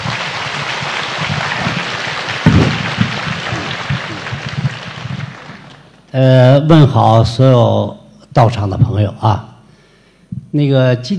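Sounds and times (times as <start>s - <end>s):
warm applause: 0.0s - 6.0s
speech: 6.1s - 9.5s, 10.5s - 11.1s.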